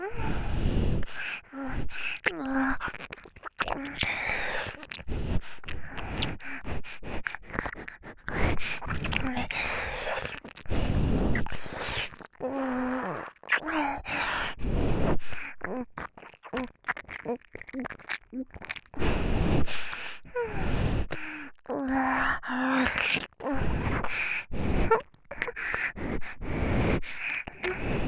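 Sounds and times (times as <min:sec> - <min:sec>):
nose breathing: 0:00.1 - 0:02.3, 0:04.0 - 0:12.2, 0:14.0 - 0:15.6, 0:18.0 - 0:28.0
ear licking: 0:02.1 - 0:14.7, 0:15.4 - 0:21.7, 0:22.4 - 0:28.0.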